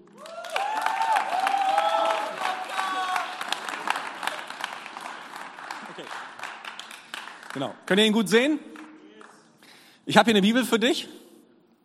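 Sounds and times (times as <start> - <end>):
whoops and cheers: 0.0 - 3.6
crowd clapping: 0.0 - 9.6
speech: 7.6 - 8.7, 10.1 - 11.2.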